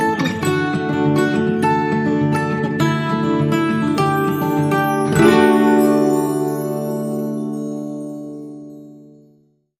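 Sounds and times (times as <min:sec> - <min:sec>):
long guitar sting: 0:00.2 - 0:09.1.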